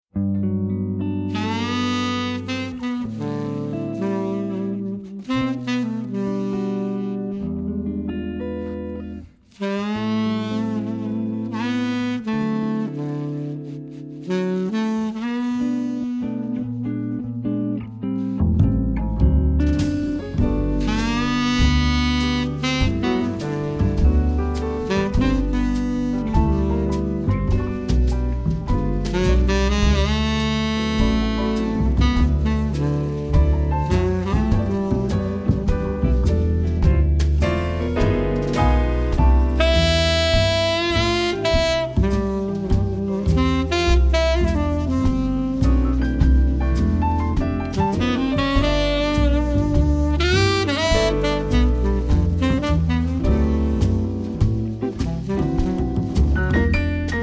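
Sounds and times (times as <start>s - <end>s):
jazz instrumental music: 0.1s - 57.2s.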